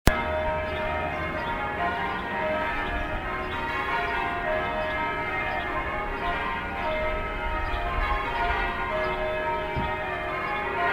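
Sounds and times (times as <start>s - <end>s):
Sunday afternoon bells ringing by a river: 0.1s - 10.9s.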